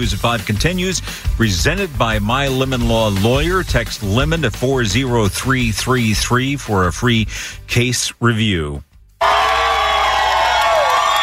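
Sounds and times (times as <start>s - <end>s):
speech: 0.0s - 9.3s
crowd cheering and whooping at the Apple store on Fifth Avenue for iPhone launch: 9.2s - 11.2s.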